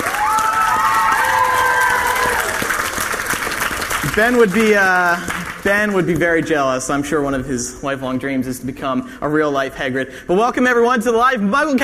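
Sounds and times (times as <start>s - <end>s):
audience cheering: 0.0s - 5.4s
audience applause: 0.0s - 6.4s
speech: 4.2s - 11.8s.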